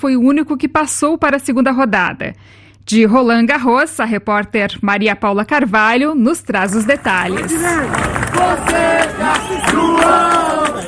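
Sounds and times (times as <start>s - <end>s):
speech: 0.0s - 10.8s
tennis crowd cheering: 6.7s - 10.8s.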